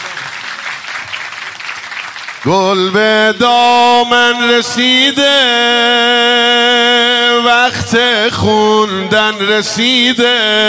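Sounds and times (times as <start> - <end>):
crowd clapping at a religious celebration: 0.0 - 3.1
speech: 2.4 - 10.6.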